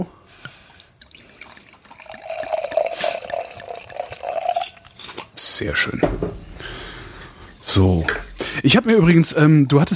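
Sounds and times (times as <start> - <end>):
drink poured into a glass: 1.0 - 5.3
speech: 5.6 - 6.4, 7.7 - 9.9.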